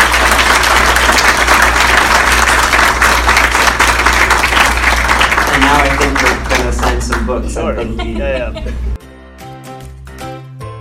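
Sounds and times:
audience applause at a book discussion event: 0.0s - 8.4s
laughter: 6.2s - 9.0s
speech: 7.3s - 9.0s.

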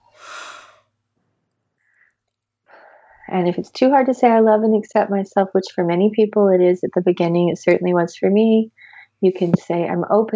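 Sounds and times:
big loud breath during a guided tapping self-acceptance exercise: 0.0s - 0.8s, 8.8s - 9.6s
soft breathy noises: 0.0s - 0.8s, 2.7s - 3.4s, 8.7s - 9.8s
speech: 3.3s - 10.3s.

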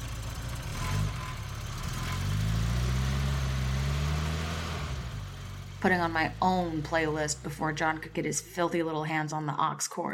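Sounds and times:
van engine pulling away: 0.0s - 8.6s
speech: 5.8s - 10.1s.

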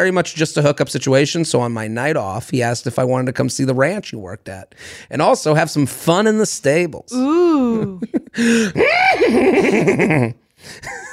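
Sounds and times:
speech: 0.0s - 11.0s
laughter: 7.6s - 11.1s
man vocally imitating a horse whinny: 8.8s - 9.5s.

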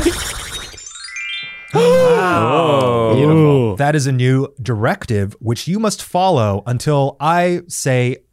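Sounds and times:
chime sound effect: 0.4s - 2.9s
speech: 1.7s - 8.3s.

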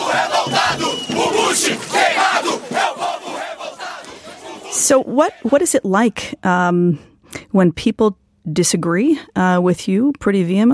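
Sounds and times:
street protest crowd against the Iraq War in São Paulo: 0.0s - 6.1s
speech: 0.1s - 0.9s, 1.5s - 2.6s, 4.9s - 10.7s.

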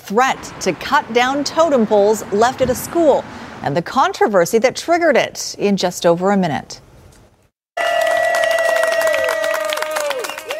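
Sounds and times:
speech: 0.1s - 6.8s
friends and neighbors cheering: 7.8s - 10.5s
rapid clapping: 8.0s - 10.5s.

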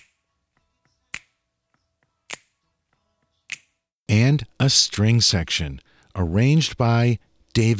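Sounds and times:
finger snaps in a soul song: 1.1s - 1.3s, 3.5s - 3.7s
speech: 4.4s - 7.7s.

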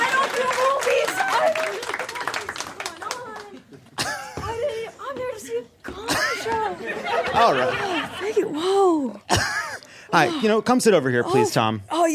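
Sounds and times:
audience applause: 0.0s - 3.7s
laughter: 5.9s - 10.6s
speech: 7.4s - 7.9s, 10.1s - 12.1s.

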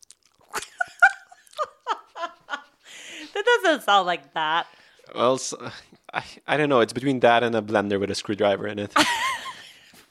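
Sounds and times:
voice imitating loud open-mouth chewing: 0.0s - 0.7s
speech: 3.4s - 9.4s.

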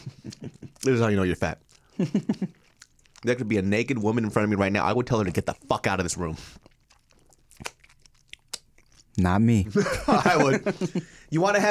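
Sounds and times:
chewing crunchy chicken wings: 0.0s - 9.3s
speech: 0.8s - 2.6s, 3.2s - 6.6s, 9.2s - 11.6s
laughter: 9.7s - 11.2s.

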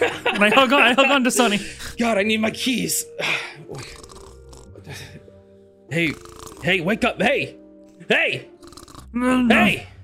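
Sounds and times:
laughter: 0.0s - 1.8s
speech: 0.0s - 4.0s, 5.9s - 8.5s, 9.1s - 9.9s
person imitating snoring with their voice: 3.7s - 5.0s, 5.9s - 6.8s, 8.5s - 9.7s.

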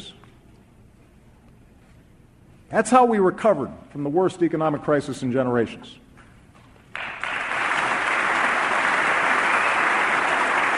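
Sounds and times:
speech: 2.7s - 6.0s
crowd applause: 6.9s - 10.7s.

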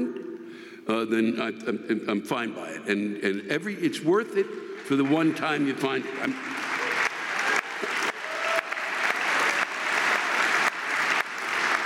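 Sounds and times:
speech: 0.9s - 6.7s
crowd clapping: 4.8s - 11.8s.

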